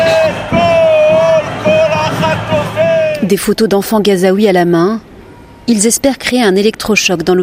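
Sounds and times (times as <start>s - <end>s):
crowd of protesters demonstrating: 0.0s - 3.5s
speech: 3.3s - 7.4s.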